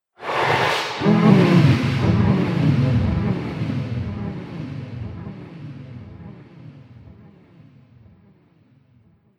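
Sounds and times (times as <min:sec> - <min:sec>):
alien sound effects: 0:00.2 - 0:06.4.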